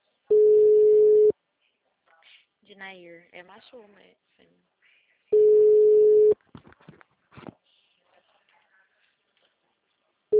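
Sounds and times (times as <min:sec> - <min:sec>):
telephone call tone after dialing a client: 0:00.3 - 0:01.3, 0:05.4 - 0:06.4
speech: 0:02.8 - 0:04.7.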